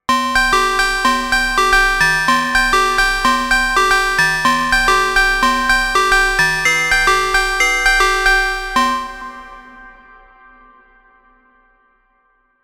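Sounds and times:
synth chimes: 0.0 - 9.9.

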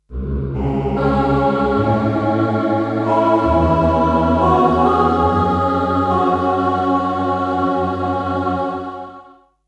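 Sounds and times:
choir synth patch: 0.1 - 9.5.

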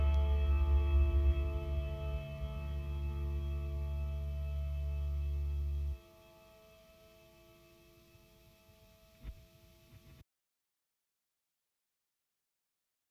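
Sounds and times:
EQD Afterneath Reverberator reverb effect: 0.0 - 6.9.

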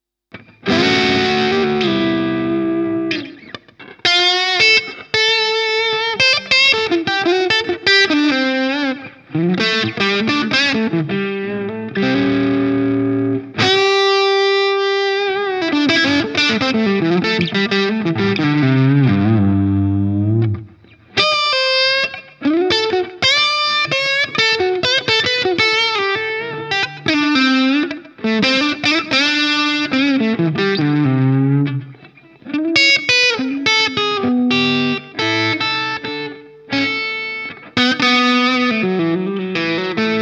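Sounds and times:
Custom 24 distorted electric guitar: 0.3 - 40.2.

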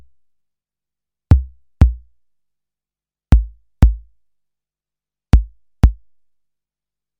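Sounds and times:
tom drum: 1.3 - 2.0, 3.3 - 4.1, 5.3 - 6.0.

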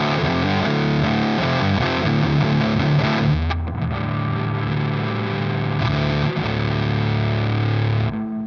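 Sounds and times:
stacked fuzz distortion: 0.0 - 8.4.

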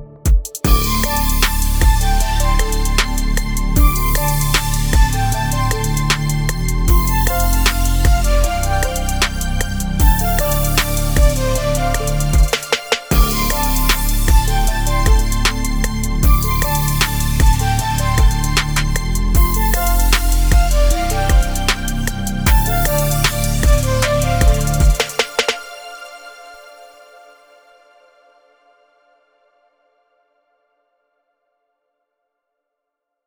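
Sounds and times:
Atlanta hip hop drum kit: 0.3 - 25.6.

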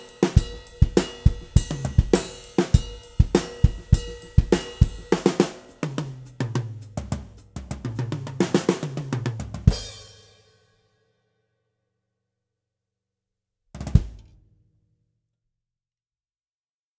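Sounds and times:
Mapex Tornado drum kit: 0.0 - 10.5, 13.8 - 14.4.

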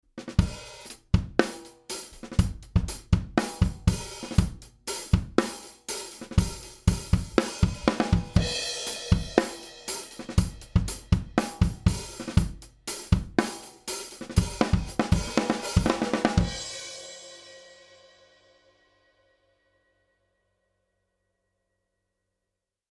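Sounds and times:
AMS Neve 33609N drum bus with extreme compression and limiter: 0.2 - 17.2.

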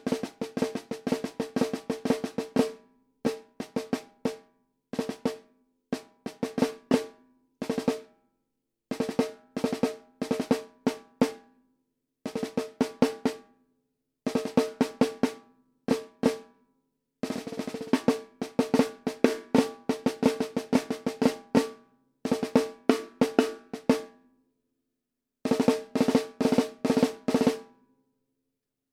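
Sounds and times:
14x65 oak snare drum: 0.0 - 8.1, 9.0 - 11.4, 12.3 - 13.4, 14.3 - 16.5, 17.2 - 24.1, 25.5 - 27.7.

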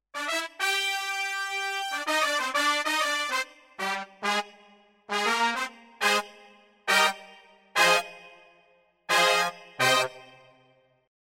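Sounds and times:
VR09 brass sound: 0.1 - 10.8.

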